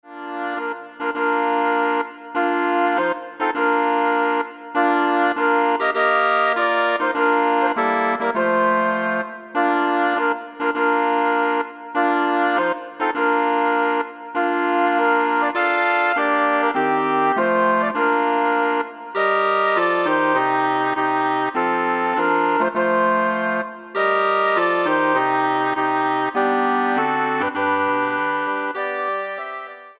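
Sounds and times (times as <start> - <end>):
woodwind ensemble: 0.0 - 29.9.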